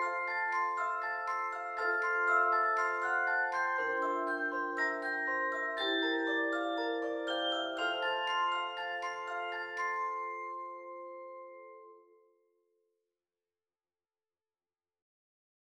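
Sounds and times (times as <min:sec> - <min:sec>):
music box: 0:00.0 - 0:12.2.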